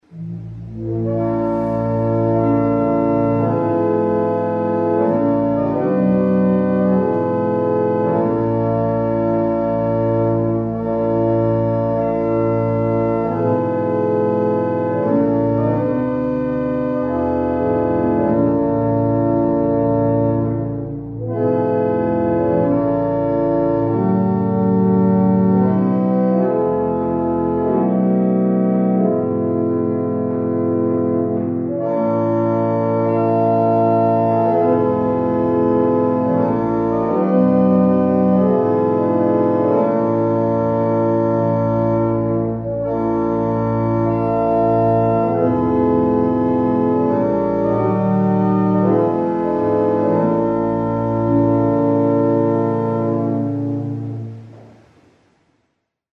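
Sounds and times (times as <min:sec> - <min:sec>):
German hymn on barrel organ: 0:00.0 - 0:55.2.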